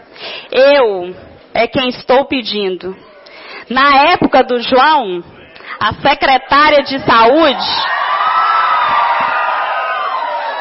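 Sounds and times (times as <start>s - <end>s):
speech: 0.6s - 8.0s
crowd booing in a council chamber plenary session: 7.5s - 10.5s.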